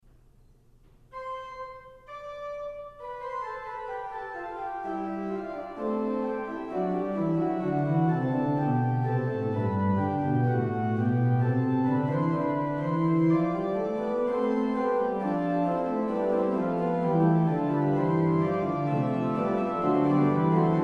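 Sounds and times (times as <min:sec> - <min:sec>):
short fugue on organ: 0:01.1 - 0:20.8.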